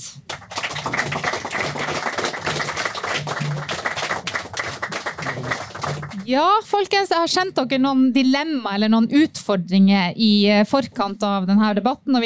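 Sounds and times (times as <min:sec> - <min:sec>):
crowd audience applause: 0:00.2 - 0:06.2
speech: 0:06.3 - 0:12.2.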